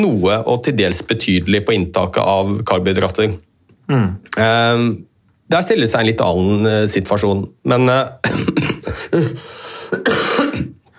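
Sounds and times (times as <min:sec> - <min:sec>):
speech: 0:00.0 - 0:10.2
harsh throaty coughs from a person with a cold: 0:08.2 - 0:10.9.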